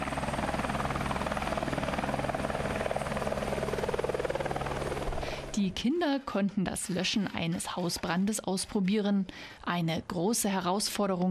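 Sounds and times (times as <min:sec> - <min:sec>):
helicopter flying overhead: 0:00.0 - 0:09.0
speech: 0:05.6 - 0:11.3.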